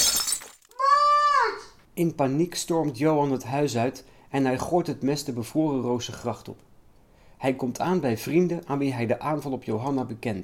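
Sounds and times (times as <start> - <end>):
window pane being smashed: 0.0 - 0.8
person shouting: 0.8 - 1.7
speech: 2.0 - 6.7, 7.4 - 10.4.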